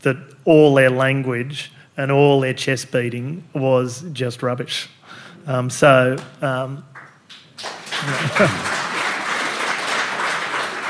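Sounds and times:
speech: 0:00.0 - 0:06.9, 0:07.6 - 0:08.7
audience applause: 0:07.6 - 0:10.8
laughter: 0:08.0 - 0:09.1.

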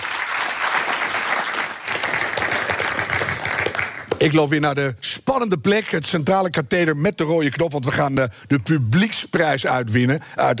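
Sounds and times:
audience applause: 0:00.0 - 0:04.2
speech: 0:04.2 - 0:10.5.

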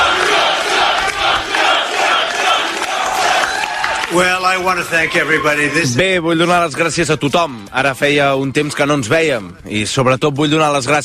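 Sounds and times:
large rally crowd cheering: 0:00.0 - 0:06.6
speech: 0:04.2 - 0:11.0.

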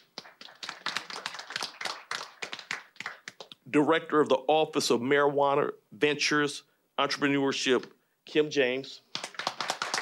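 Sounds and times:
audience applause: 0:00.0 - 0:03.5, 0:09.2 - 0:10.0
speech: 0:03.7 - 0:09.0.

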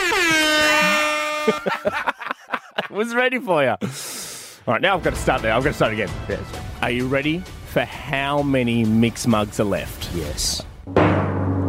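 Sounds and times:
electric car horn honking: 0:00.0 - 0:01.9
laughter: 0:00.8 - 0:03.0
speech: 0:01.5 - 0:02.2, 0:02.8 - 0:11.1.

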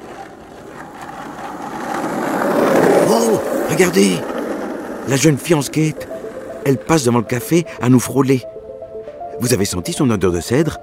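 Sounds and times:
skateboard wheels rolling over pavement: 0:00.0 - 0:08.3
speech: 0:03.7 - 0:04.3, 0:05.0 - 0:08.5, 0:09.4 - 0:10.8.

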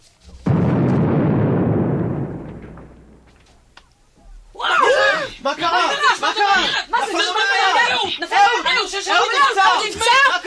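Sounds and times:
grenade explosion: 0:00.4 - 0:03.7
man shouting: 0:04.6 - 0:10.4.

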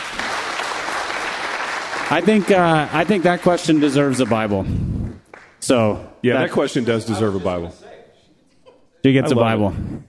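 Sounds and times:
crowd applauding: 0:00.0 - 0:05.8
speech: 0:02.1 - 0:04.9, 0:05.6 - 0:07.8, 0:09.0 - 0:10.0.

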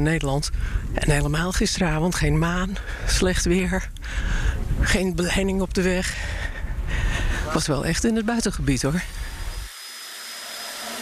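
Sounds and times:
speech: 0:00.0 - 0:06.4, 0:07.5 - 0:09.2
power drills: 0:08.8 - 0:11.0.

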